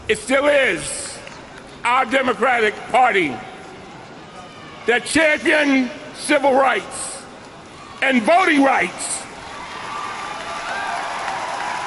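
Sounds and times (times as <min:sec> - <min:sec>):
speech: 0:00.1 - 0:01.0, 0:01.8 - 0:03.5, 0:04.8 - 0:07.0, 0:08.0 - 0:09.1
audience applause: 0:09.4 - 0:11.8.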